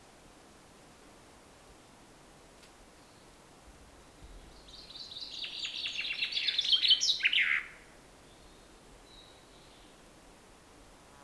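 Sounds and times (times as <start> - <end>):
Common chaffinch Fringilla coelebs singing descending trilled phrases: 4.7 - 7.7.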